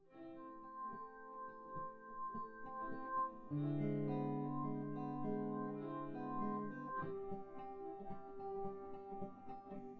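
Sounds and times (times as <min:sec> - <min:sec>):
synthesizer without drums: 0:00.0 - 0:09.9.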